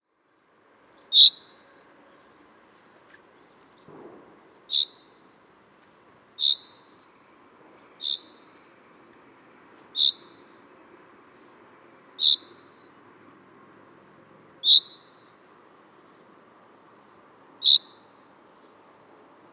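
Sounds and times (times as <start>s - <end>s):
common chaffinch Fringilla coelebs calling: 1.1s - 1.6s, 4.7s - 5.2s, 6.4s - 6.9s, 8.0s - 8.5s, 10.0s - 10.5s, 12.2s - 12.8s, 14.6s - 15.2s, 17.6s - 18.1s.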